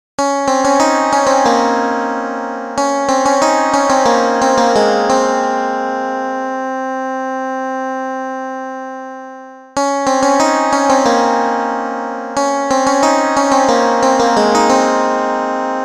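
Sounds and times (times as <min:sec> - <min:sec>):
instrumental tone: 0:00.2 - 0:07.4, 0:08.2 - 0:15.8.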